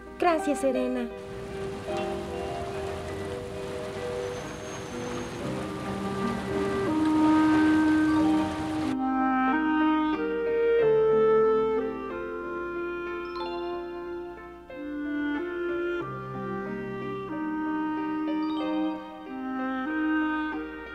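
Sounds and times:
soft sustained musical score: 0:00.0 - 0:20.9
speech: 0:00.2 - 0:01.3
rain falling: 0:01.1 - 0:09.0.

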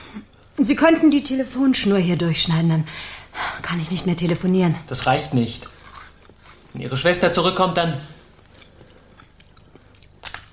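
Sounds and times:
speech: 0:00.1 - 0:05.8, 0:06.8 - 0:08.1
biting and chewing of cookies: 0:04.9 - 0:07.0, 0:08.3 - 0:10.5.

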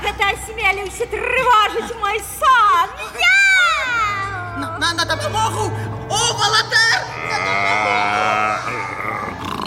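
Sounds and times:
speech: 0:00.2 - 0:03.4, 0:04.8 - 0:08.9
laughter: 0:01.3 - 0:09.4
tiger growling roar: 0:07.0 - 0:09.6.

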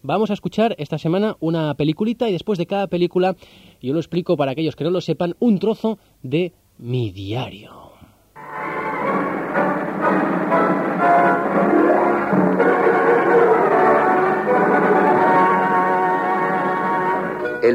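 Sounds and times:
speech: 0:00.0 - 0:07.8
sustained horn-like tones: 0:08.4 - 0:17.7
trains at Rome's Termini station rumbling: 0:08.4 - 0:17.7.

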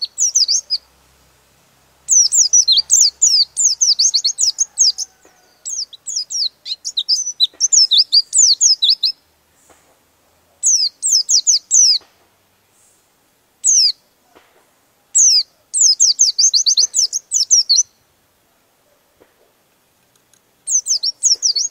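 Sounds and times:
songbird singing high quick chattering and whistled phrases: 0:00.0 - 0:01.0, 0:02.0 - 0:09.3, 0:10.5 - 0:12.1, 0:13.6 - 0:14.2, 0:15.1 - 0:18.1, 0:20.6 - 0:21.6.

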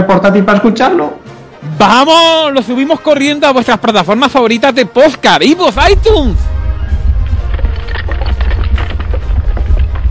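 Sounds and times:
speech: 0:00.1 - 0:06.5
temple collapsing rumble: 0:05.8 - 0:10.1.

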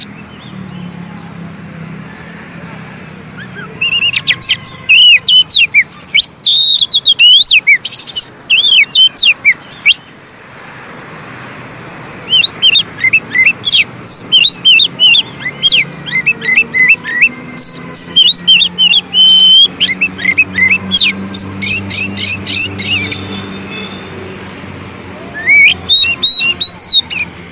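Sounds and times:
Oriental magpie-robin whistled song: 0:03.4 - 0:10.1, 0:12.2 - 0:23.9, 0:25.3 - 0:27.5
speech: 0:17.8 - 0:22.6.

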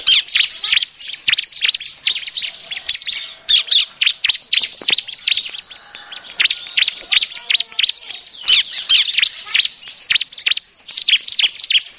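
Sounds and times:
Bar-winged Prinia chattering as a lure call for trapping birds: 0:00.0 - 0:11.9.

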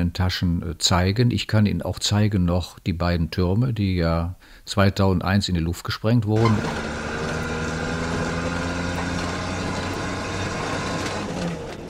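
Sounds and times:
speech: 0:00.1 - 0:07.0
local bus engine climbing jungle mountain serpentines: 0:06.4 - 0:11.8.

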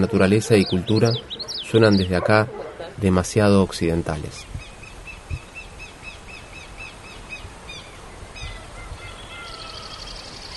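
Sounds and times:
speech: 0:00.0 - 0:04.5
birds chattering: 0:00.0 - 0:10.5.

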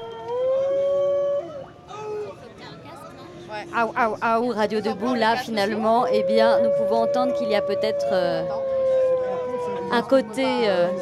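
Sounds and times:
sirens: 0:00.0 - 0:01.8, 0:05.6 - 0:10.9
speech: 0:03.6 - 0:08.7, 0:09.9 - 0:10.9.

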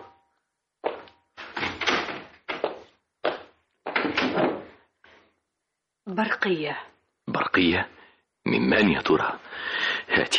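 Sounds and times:
door being opened: 0:01.4 - 0:02.6, 0:03.9 - 0:04.7
speech: 0:06.1 - 0:10.3.

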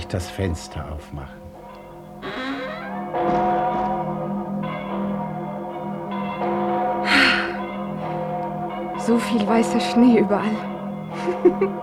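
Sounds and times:
church bells ringing: 0:00.0 - 0:11.8
speech: 0:00.1 - 0:01.4, 0:09.0 - 0:10.7, 0:11.3 - 0:11.8
laughter: 0:11.2 - 0:11.8.

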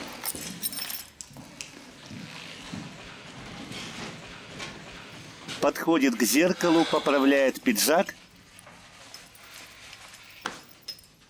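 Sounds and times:
keys picked up from a table, jangling: 0:00.0 - 0:01.4, 0:08.3 - 0:11.2
speech: 0:05.6 - 0:08.2.

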